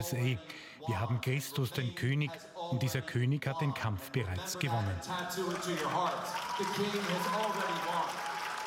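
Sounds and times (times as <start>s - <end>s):
speech: 0.0s - 8.3s
people clapping: 4.7s - 8.6s
crowd cheering: 5.0s - 8.6s.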